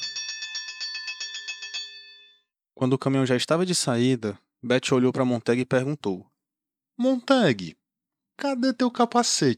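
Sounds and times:
fire alarm bell ringing: 0.0 - 2.5
speech: 2.8 - 6.3, 7.0 - 7.8, 8.4 - 9.5.

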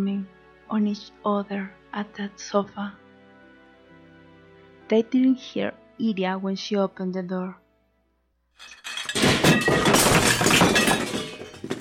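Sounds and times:
speech: 0.0 - 3.0, 4.9 - 7.6, 8.6 - 8.8
tray of porcelain ware falling and shattering: 8.6 - 11.7.

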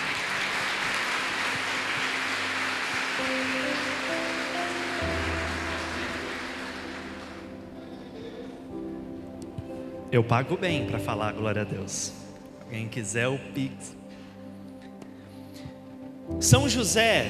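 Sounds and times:
audience applauding loudly: 0.0 - 8.0
speech: 10.1 - 14.0, 16.4 - 17.2.

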